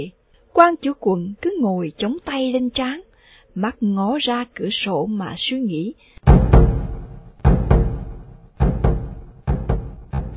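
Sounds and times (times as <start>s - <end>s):
speech: 0.0s - 6.4s
large drum struck to summon the court: 6.3s - 10.3s.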